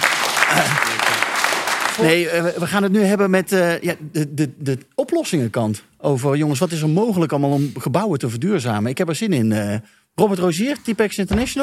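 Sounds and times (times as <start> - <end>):
audience applause: 0.0 - 2.0
speech: 0.5 - 1.2, 2.0 - 11.6.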